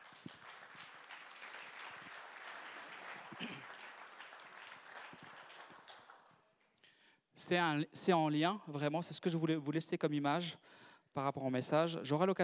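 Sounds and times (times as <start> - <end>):
audience applause: 0.0 - 6.3
speech: 7.5 - 12.4.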